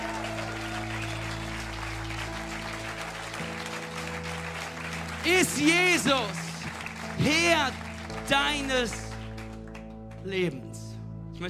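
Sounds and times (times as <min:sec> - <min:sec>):
audience applause: 0:00.0 - 0:10.0
speech: 0:05.2 - 0:06.4, 0:07.2 - 0:09.0, 0:10.2 - 0:10.7.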